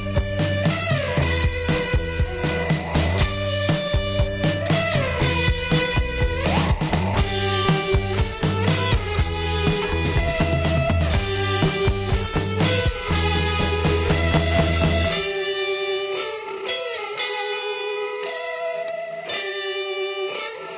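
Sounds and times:
full band with drums and bass: 0.0 - 16.2
distorted electric guitar solo: 0.0 - 20.7.

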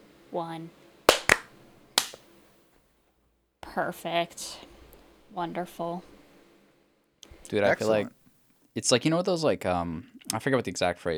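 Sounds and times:
speech: 0.3 - 0.8, 3.7 - 4.7, 5.3 - 6.2, 7.5 - 8.2, 8.8 - 11.1
hand clap for audio sync: 1.1 - 2.2.

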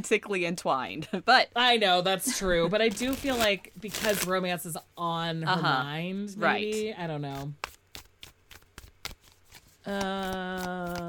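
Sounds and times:
speech: 0.0 - 7.7, 9.8 - 11.0
tarot card deck being shuffled: 2.9 - 4.8, 7.3 - 11.0.

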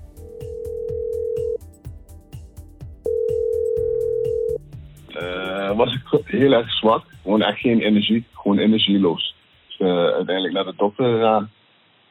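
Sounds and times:
soft repeating rhythmic beat: 0.0 - 9.7
phone ringback tone on an outgoing call: 0.2 - 1.6, 3.1 - 4.6
speech: 5.8 - 9.2, 9.8 - 11.6.

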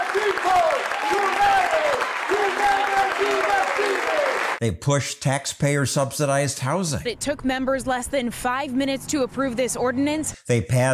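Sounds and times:
council members applauding: 0.0 - 4.6
speech: 4.6 - 10.9.

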